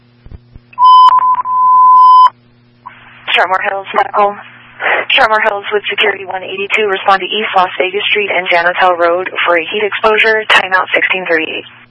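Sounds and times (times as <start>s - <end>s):
fire dispatch alert tone beep: 0.8s - 2.3s
speech: 3.4s - 4.5s, 5.2s - 11.8s.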